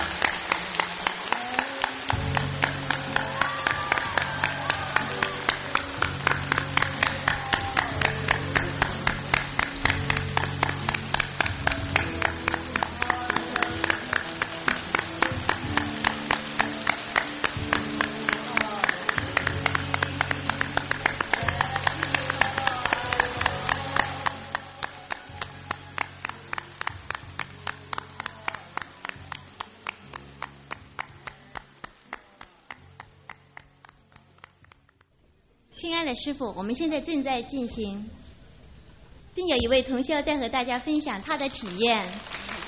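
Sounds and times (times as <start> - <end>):
audience applause welcoming a speaker: 0.0 - 35.0, 41.2 - 42.6
speech: 36.1 - 38.2, 39.4 - 42.3.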